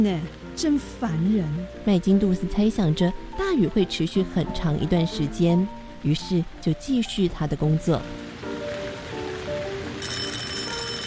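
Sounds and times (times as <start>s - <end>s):
speech: 0.0s - 8.2s
end-of-work bell ringing: 10.0s - 11.0s.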